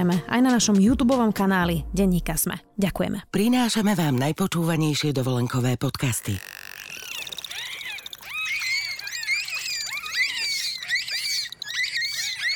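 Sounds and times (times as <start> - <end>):
speech: 0.0 - 6.6
bottlenose dolphins squealing and whistling: 6.0 - 12.5.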